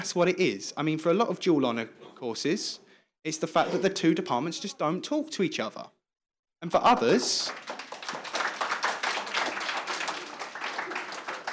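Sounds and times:
speech: 0.0 - 6.0, 6.6 - 7.8
audience applause: 6.9 - 11.5.

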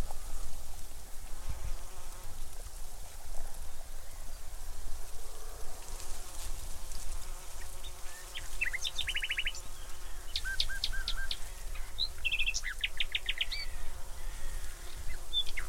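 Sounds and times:
bee buzzing at Ringstead: 0.0 - 15.6
birdsong at Ringstead: 7.6 - 15.6.

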